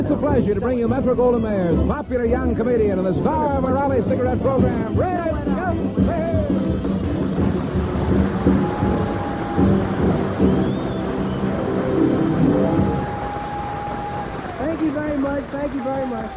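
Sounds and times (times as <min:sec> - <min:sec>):
speech: 0:00.2 - 0:06.9, 0:14.8 - 0:16.3
audience applause: 0:06.8 - 0:16.3.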